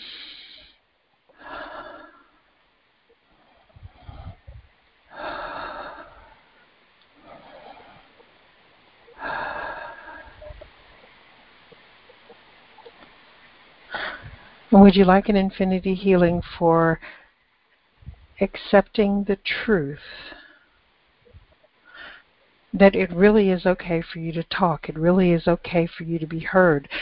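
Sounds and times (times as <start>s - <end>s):
slow deep breathing during a guided relaxation exercise: 0.0s - 2.6s, 3.2s - 8.3s, 9.1s - 13.0s, 13.9s - 14.8s
speech: 14.7s - 17.2s, 18.4s - 20.4s, 22.7s - 27.0s.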